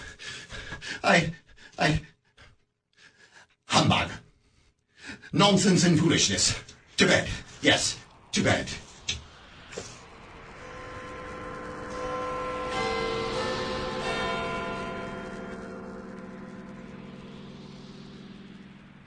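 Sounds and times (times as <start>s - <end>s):
speech: 1.1s - 2.1s, 5.3s - 8.8s
clock striking one: 10.7s - 17.6s.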